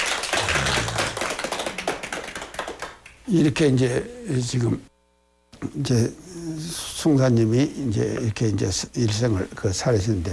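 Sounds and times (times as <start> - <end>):
audience clapping: 0.0 - 3.6
speech: 3.3 - 4.9, 5.6 - 10.3.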